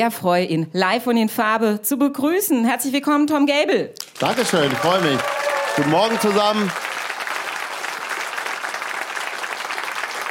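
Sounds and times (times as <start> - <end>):
speech: 0.0 - 6.8
audience applauding: 4.0 - 10.2.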